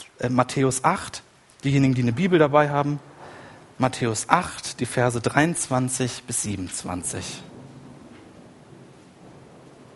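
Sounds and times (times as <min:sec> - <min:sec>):
rain-like hissing wash: 0:00.0 - 0:09.9
speech: 0:00.2 - 0:03.1, 0:03.8 - 0:07.6
thunder during a church service: 0:02.9 - 0:09.9.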